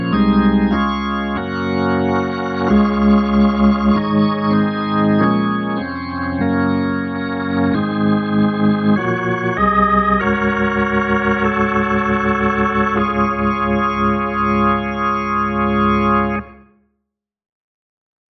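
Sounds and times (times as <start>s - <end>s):
full organs: 0.0s - 16.6s.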